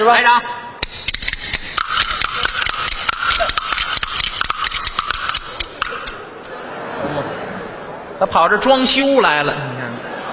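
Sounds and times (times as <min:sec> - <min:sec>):
speech: 0:00.0 - 0:00.6, 0:08.2 - 0:10.2
bamboo clappers played out of sync: 0:00.8 - 0:06.4
laughter: 0:05.2 - 0:08.4, 0:09.5 - 0:10.3.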